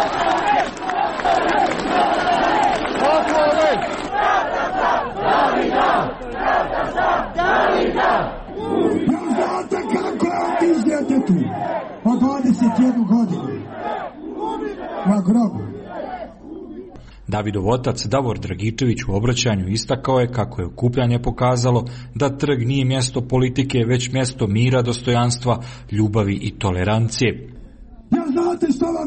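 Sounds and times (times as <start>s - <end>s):
protest crowd chanting: 0.0s - 17.0s
speech: 17.3s - 27.5s, 28.1s - 29.0s.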